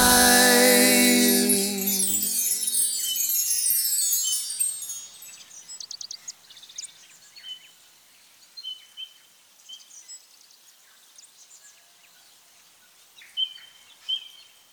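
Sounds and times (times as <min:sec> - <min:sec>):
ambient vocals: 0:00.0 - 0:03.2.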